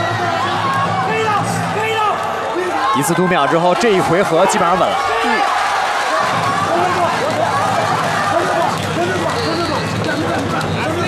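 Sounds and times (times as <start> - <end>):
crowd cheering: 0.0 - 11.0
speech: 3.0 - 5.6.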